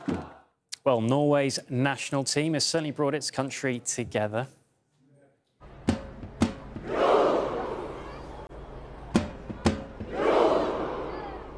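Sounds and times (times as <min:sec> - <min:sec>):
tens of thousands of fans roaring in Oslo: 0:00.0 - 0:00.4, 0:05.6 - 0:11.5
speech: 0:00.8 - 0:04.6.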